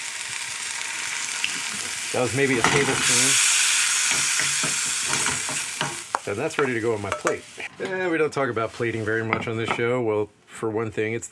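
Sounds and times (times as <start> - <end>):
mustard greens stir-frying with Shaoxing wine: 0.0 - 7.7
speech: 2.1 - 3.5, 6.3 - 11.3.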